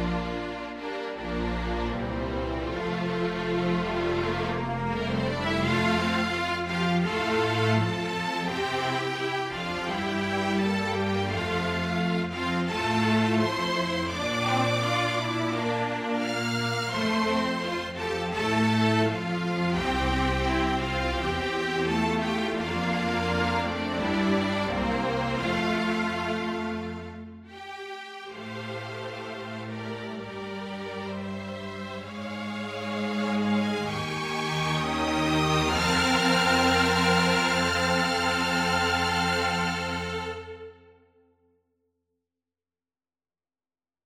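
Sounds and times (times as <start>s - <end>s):
string orchestra playing: 0.0s - 41.0s.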